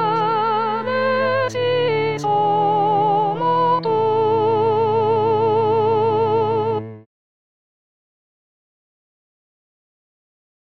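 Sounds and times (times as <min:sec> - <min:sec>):
soprano singing: 0:00.0 - 0:07.1.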